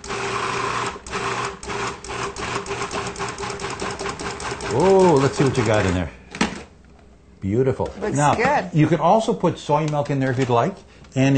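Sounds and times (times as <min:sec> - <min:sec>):
blender pulsing: 0:00.0 - 0:06.0
speech: 0:04.7 - 0:06.2, 0:07.4 - 0:11.3.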